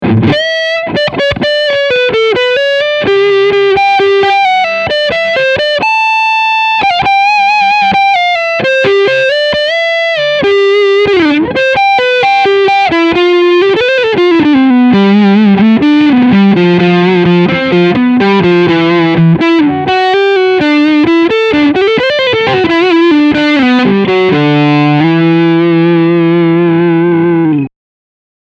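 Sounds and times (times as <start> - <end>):
electric guitar front pickup with overdrive: 0.0 - 27.7.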